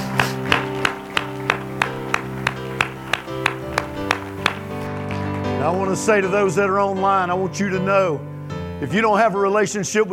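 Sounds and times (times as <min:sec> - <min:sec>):
audience clapping: 0:00.0 - 0:06.4
speech: 0:05.6 - 0:10.1.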